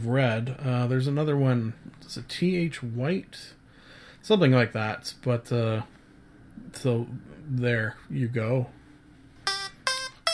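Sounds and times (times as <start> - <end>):
speech: 0.0 - 3.6, 4.2 - 6.0, 6.6 - 8.8
timer going off: 9.5 - 10.3.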